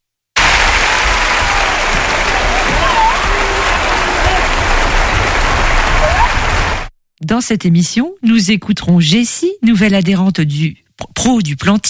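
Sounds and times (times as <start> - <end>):
audience applause: 0.4 - 6.9
speech: 7.3 - 11.8.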